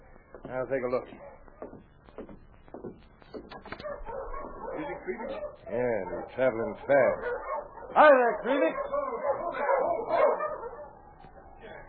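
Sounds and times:
dogs barking at someone approaching: 0:00.2 - 0:02.3, 0:03.5 - 0:11.8
speech: 0:00.5 - 0:01.9, 0:04.8 - 0:09.0
dogs whining: 0:03.8 - 0:11.8.

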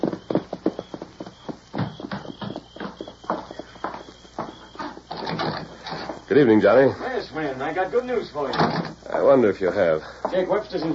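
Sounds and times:
horses' hooves clip-clopping as they're led: 0:00.0 - 0:07.5
speech: 0:06.3 - 0:10.9.

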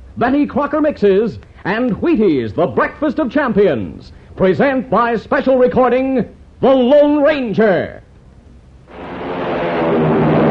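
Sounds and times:
speech: 0:00.2 - 0:08.0
American Airlines flagship airliner taking off: 0:08.9 - 0:10.5.

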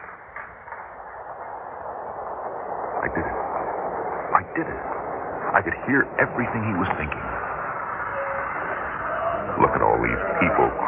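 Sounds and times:
subway train arriving: 0:02.8 - 0:10.8
speech: 0:03.0 - 0:03.5, 0:04.6 - 0:07.4, 0:09.6 - 0:10.8.

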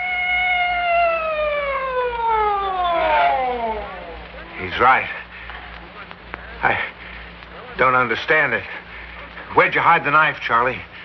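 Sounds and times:
police siren wailing: 0:00.0 - 0:04.7
speech: 0:04.8 - 0:05.2, 0:06.6 - 0:06.9, 0:07.8 - 0:08.8, 0:09.5 - 0:11.0.

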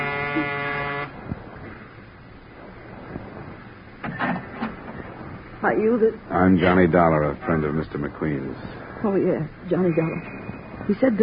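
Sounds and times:
door buzzer: 0:00.0 - 0:01.2
speech: 0:05.6 - 0:11.2.

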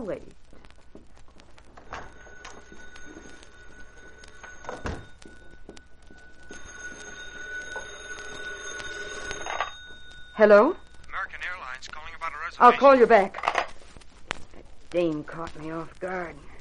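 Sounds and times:
speech: 0:00.0 - 0:00.4, 0:10.4 - 0:10.8, 0:12.6 - 0:13.4, 0:14.9 - 0:16.5
telephone ringing in another room: 0:01.6 - 0:13.7.

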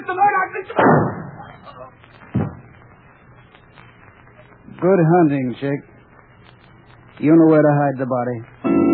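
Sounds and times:
speech: 0:00.1 - 0:02.4, 0:04.8 - 0:05.9, 0:07.2 - 0:08.8
gunshot in a radio drama: 0:00.8 - 0:01.6, 0:02.3 - 0:02.7.

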